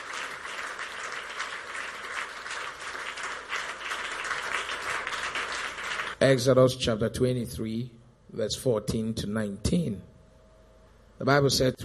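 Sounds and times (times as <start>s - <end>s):
audience clapping hands: 0.0s - 6.2s
speech: 6.2s - 10.1s, 11.2s - 11.8s.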